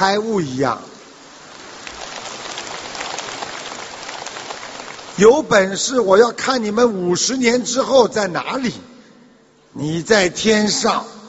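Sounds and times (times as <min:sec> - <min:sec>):
speech: 0:00.0 - 0:00.9, 0:05.2 - 0:08.9, 0:09.8 - 0:11.2
enthusiastic audience applause: 0:01.6 - 0:05.3.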